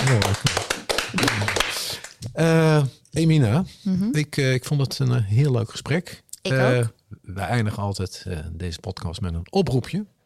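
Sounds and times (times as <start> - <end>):
small group clapping for poems: 0.0 - 2.4
speech: 2.4 - 10.2.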